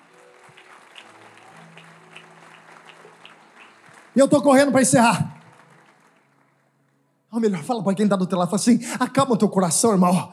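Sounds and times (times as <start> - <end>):
audience applauding: 0.0 - 7.8
speech: 4.2 - 5.3, 7.4 - 10.3.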